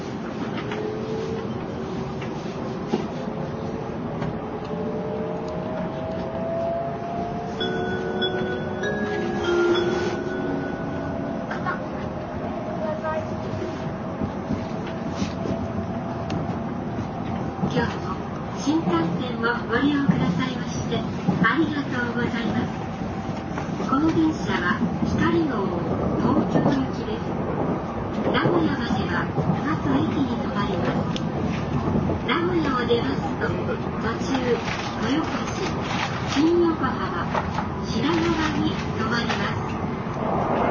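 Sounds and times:
JR 700-series Shinkansen train rumble from Kyoto to Shin-Yokohama: 0.0 - 40.6.

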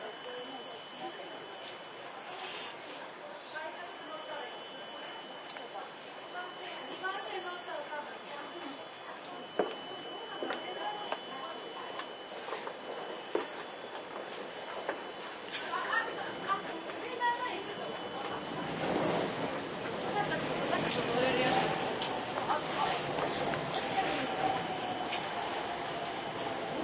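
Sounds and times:
faint voices on a Toei 10-300 series train: 0.0 - 26.8
Toei 10-300 series train carriage rumble: 8.9 - 26.8.

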